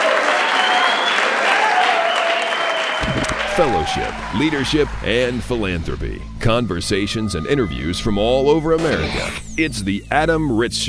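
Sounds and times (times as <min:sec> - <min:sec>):
studio audience applause: 0:00.0 - 0:05.8
speech: 0:03.6 - 0:10.8.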